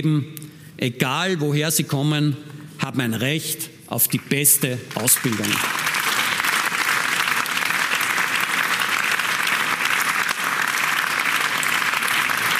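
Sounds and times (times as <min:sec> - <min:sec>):
speech: 0:00.0 - 0:05.9
audience applause: 0:04.9 - 0:12.5.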